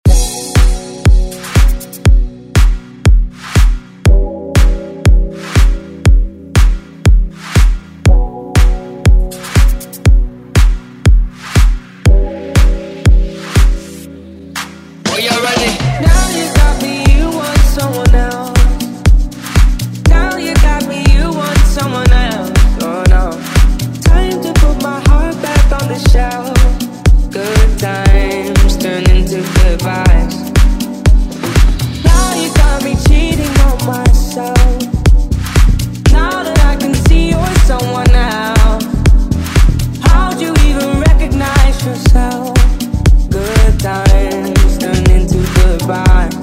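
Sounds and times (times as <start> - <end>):
house music: 0.0 - 46.4.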